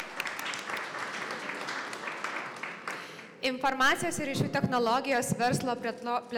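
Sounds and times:
audience applauding at a panel discussion: 0:00.0 - 0:03.4
speech: 0:03.4 - 0:06.3.

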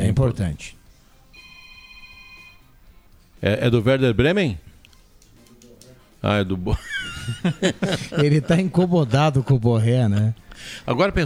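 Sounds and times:
speech: 0:00.2 - 0:00.8, 0:03.4 - 0:04.6, 0:06.2 - 0:11.2
electronic ringtone of an incoming phone call: 0:01.3 - 0:02.8
laughter: 0:06.7 - 0:09.4.

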